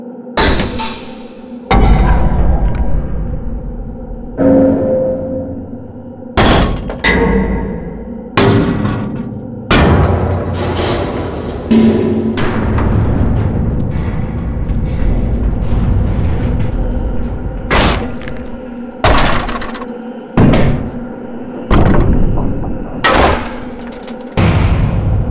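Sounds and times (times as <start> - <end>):
metal impacts: 0.4 - 25.2.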